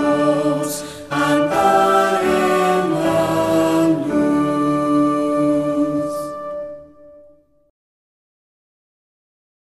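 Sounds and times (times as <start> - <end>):
Spanish vocal and instrumental hymns: 0.0 - 6.8.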